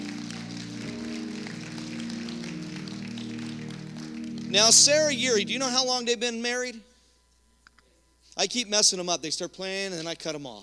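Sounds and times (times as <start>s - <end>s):
audience applause: 0.0s - 5.5s
speech: 4.5s - 6.9s, 8.4s - 10.6s.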